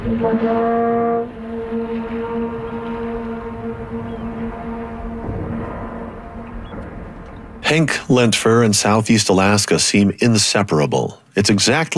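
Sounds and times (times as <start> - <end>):
speech: 0.0 - 1.4, 7.7 - 11.9
long note echoing between rock walls: 0.0 - 8.2.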